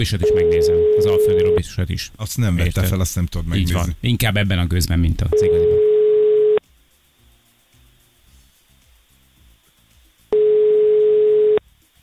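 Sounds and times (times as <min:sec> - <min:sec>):
speech: 0:00.0 - 0:05.9
telephone ringback tone of an unanswered call: 0:00.2 - 0:01.6, 0:05.3 - 0:06.6, 0:10.3 - 0:11.6.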